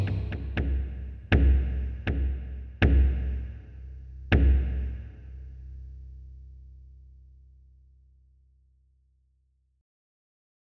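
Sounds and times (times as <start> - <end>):
drum: 0.0 - 3.6, 4.3 - 5.2.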